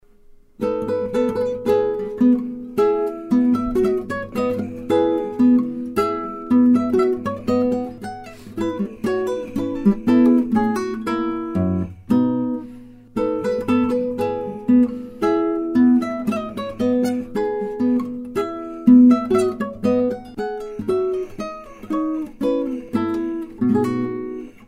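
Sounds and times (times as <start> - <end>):
minuet: 0.6 - 24.6.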